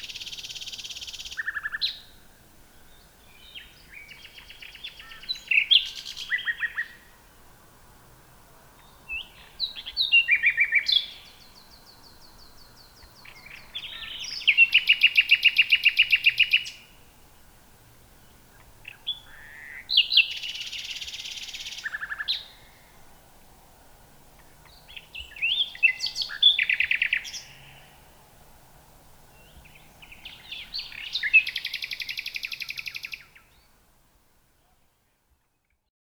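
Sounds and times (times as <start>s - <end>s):
common nightingale Luscinia megarhynchos: 0.0s - 7.1s, 8.8s - 17.1s, 18.2s - 23.2s, 24.4s - 28.1s, 29.3s - 33.8s.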